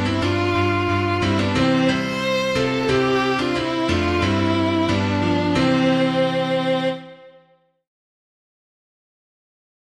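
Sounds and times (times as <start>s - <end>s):
piano: 0.0s - 7.8s.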